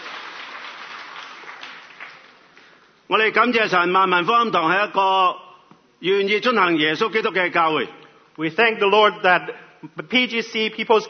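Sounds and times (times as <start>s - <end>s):
church congregation applause: 0.0s - 3.0s
speech: 3.1s - 5.4s, 6.0s - 11.0s.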